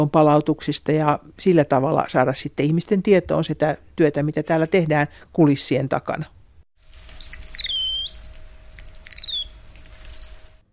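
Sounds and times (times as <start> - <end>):
speech: 0.0 - 6.4
faint constant hum: 6.9 - 10.7
birdsong: 7.1 - 10.6.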